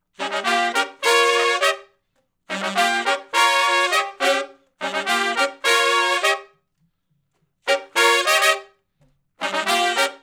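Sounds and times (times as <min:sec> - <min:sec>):
R&B horn riff in E flat harmony: 0:00.2 - 0:01.9, 0:02.5 - 0:06.5, 0:07.7 - 0:08.8, 0:09.4 - 0:10.2.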